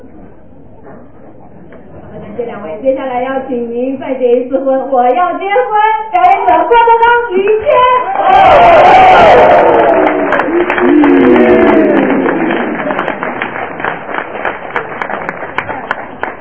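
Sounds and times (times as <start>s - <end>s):
speech: 2.4s - 10.0s
audience applause: 8.1s - 16.3s.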